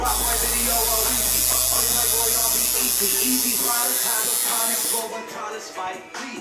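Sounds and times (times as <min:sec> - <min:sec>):
tattoo gun buzzing at a tattoo shop: 0:00.0 - 0:05.2.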